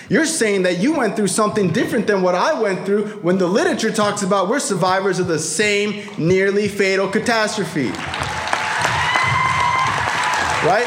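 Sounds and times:
speech: 0:00.1 - 0:08.3, 0:10.6 - 0:10.8
audience clapping: 0:07.8 - 0:10.8.

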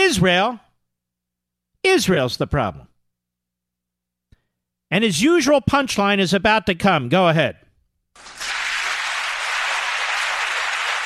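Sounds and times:
speech: 0:00.1 - 0:00.6, 0:01.8 - 0:02.9, 0:04.9 - 0:07.6
audience cheering and applauding: 0:08.2 - 0:11.0.

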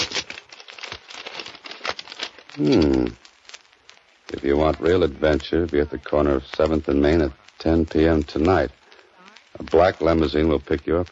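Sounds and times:
paper envelope crinkling and tearing as it is opened: 0:00.0 - 0:03.6
speech: 0:02.6 - 0:03.2, 0:04.4 - 0:08.8, 0:09.6 - 0:11.0.

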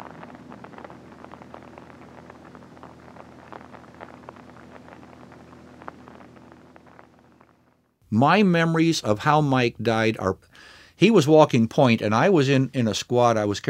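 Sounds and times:
rain falling at night: 0:00.0 - 0:07.8
speech: 0:08.1 - 0:13.6.

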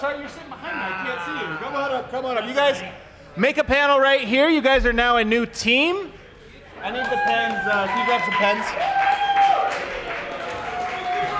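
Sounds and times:
speech: 0:00.0 - 0:06.2, 0:06.8 - 0:09.0
audience applause: 0:06.8 - 0:11.3.

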